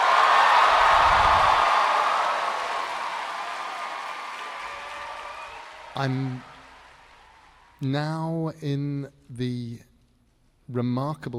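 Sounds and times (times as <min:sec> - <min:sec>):
large audience applauding: 0:00.0 - 0:07.8
speech: 0:06.0 - 0:06.5, 0:07.8 - 0:09.9, 0:10.7 - 0:11.3.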